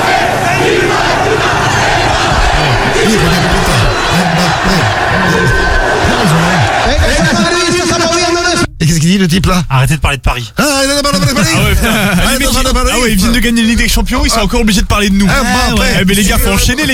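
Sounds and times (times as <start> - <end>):
football supporters chanting in celebration: 0.0 - 8.3
laughter: 1.2 - 8.5, 11.1 - 12.7
speech: 8.9 - 16.9.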